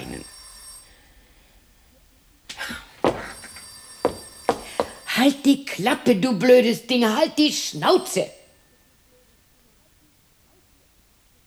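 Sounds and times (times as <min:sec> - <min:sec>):
telephone bell ringing: 0:00.0 - 0:08.9
speech: 0:05.2 - 0:08.4.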